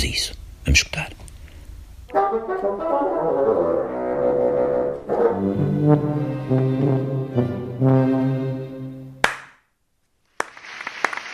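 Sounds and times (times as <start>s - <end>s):
speech: 0.0s - 1.1s
orchestra playing sustained low harmonic chords: 2.1s - 9.2s
concert audience applauding conductor and orchestra: 10.4s - 11.3s.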